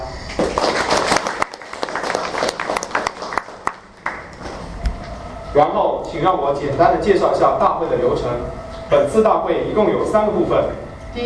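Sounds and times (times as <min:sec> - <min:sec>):
audience applause: 0:00.4 - 0:04.4
speech: 0:05.6 - 0:11.2.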